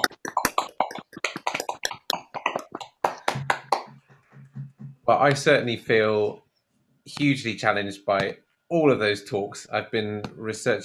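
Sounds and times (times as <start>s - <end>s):
round of applause from online meeting: 1.2s - 4.0s
speech: 5.1s - 6.4s, 7.1s - 10.8s.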